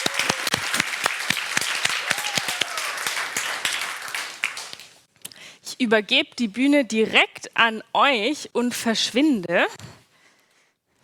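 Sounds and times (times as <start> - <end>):
big round of applause: 0.0 - 5.0
speech: 5.8 - 9.8.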